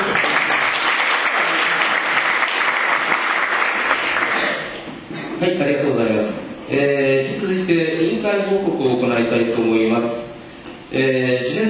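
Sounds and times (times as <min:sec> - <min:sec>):
audience applause: 0:00.0 - 0:04.8
speech: 0:05.6 - 0:10.2, 0:10.9 - 0:11.6.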